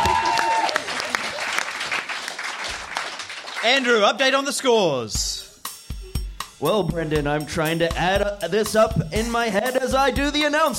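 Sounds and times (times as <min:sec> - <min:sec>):
audience clapping: 0:00.0 - 0:04.7
speech: 0:03.6 - 0:05.4, 0:06.6 - 0:10.7.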